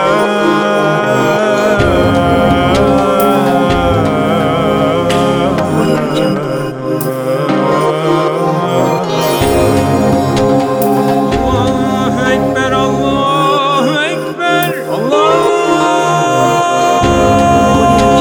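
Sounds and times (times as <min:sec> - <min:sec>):
ambient emotional new age music: 0:00.0 - 0:18.1.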